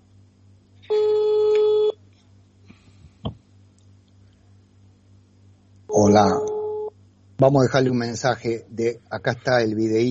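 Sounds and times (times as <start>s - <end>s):
electronic phone ring tone on a call to the Minister of Public Health of Uruguay: 0.9s - 1.9s, 5.9s - 6.9s
speech: 6.0s - 6.5s, 7.4s - 10.0s.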